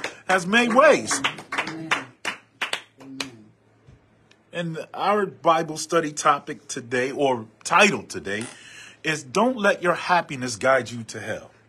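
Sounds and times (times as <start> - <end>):
hand claps: 0.0 - 3.4
speech: 0.3 - 1.9, 4.6 - 11.5.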